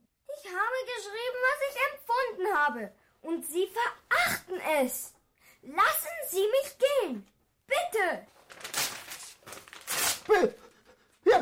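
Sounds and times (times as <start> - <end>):
speech: 0.4 - 8.7, 10.3 - 10.6
sheet music being torn up: 8.4 - 10.5.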